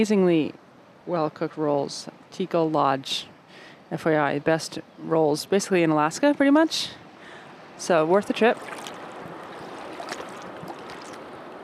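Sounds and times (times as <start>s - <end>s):
speech: 0.0s - 3.3s, 3.9s - 7.0s, 7.8s - 8.8s
flowing water of the Tazlina River in Alaska: 7.1s - 11.6s.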